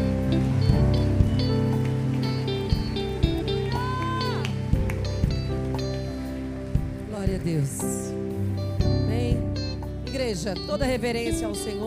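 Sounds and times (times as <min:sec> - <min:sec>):
sustained keyboard chords: 0:00.0 - 0:11.8
audience clapping: 0:01.0 - 0:07.8
speech: 0:10.3 - 0:11.8.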